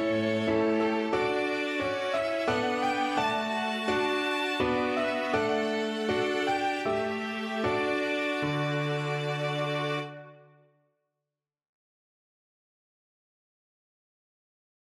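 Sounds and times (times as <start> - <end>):
piano quartet: 0.0 - 10.4.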